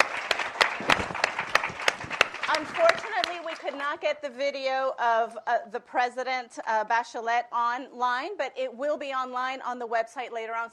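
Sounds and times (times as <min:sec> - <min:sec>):
audience applause: 0:00.0 - 0:03.9
speech: 0:02.6 - 0:10.7.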